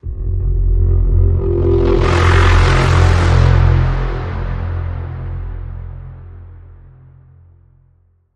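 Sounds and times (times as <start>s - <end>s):
pitch bend on F: 0.0s - 6.2s.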